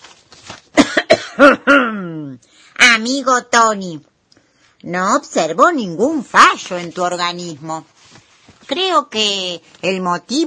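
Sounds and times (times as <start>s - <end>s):
narrator acting out a doctor clearing his throat: 0.8s - 2.2s
speech: 1.4s - 4.1s, 4.8s - 7.9s, 8.7s - 10.4s.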